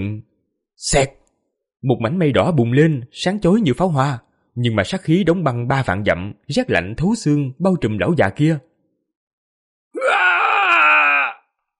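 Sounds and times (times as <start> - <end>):
speech: 0.0 - 1.2, 1.8 - 8.7
old man's agonized scream: 10.0 - 11.6.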